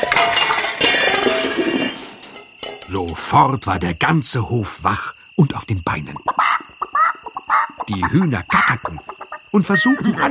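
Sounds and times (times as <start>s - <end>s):
wheelbarrow of empty watering cans crashing over: 0.0s - 3.4s
speech: 2.9s - 6.6s, 7.9s - 10.2s.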